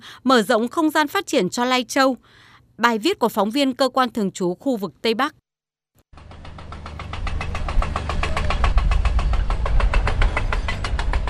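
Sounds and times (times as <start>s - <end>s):
speech: 0.0s - 5.4s
rapid hammering pulse of drilling machine: 6.2s - 11.2s
tunnel drilling machine engine rumble: 6.2s - 11.2s.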